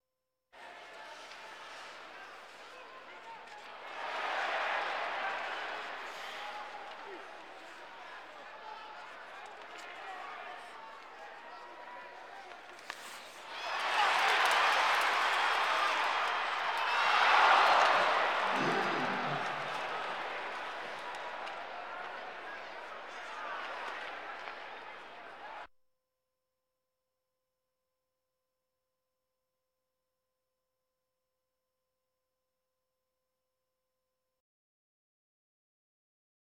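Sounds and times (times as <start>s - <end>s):
sports crowd: 0.6s - 25.7s.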